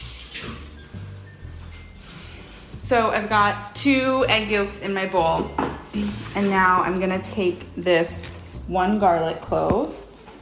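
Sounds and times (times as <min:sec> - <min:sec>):
hands washing under running tap water: 0:00.0 - 0:01.3
speech: 0:02.9 - 0:10.4.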